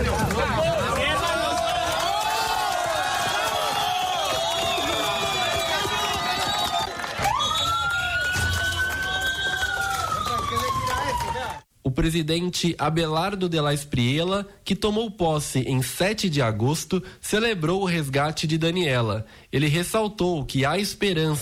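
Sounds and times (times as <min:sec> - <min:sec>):
rescuers and relatives cheering with joy: 0:00.0 - 0:11.6
speech: 0:12.0 - 0:21.3.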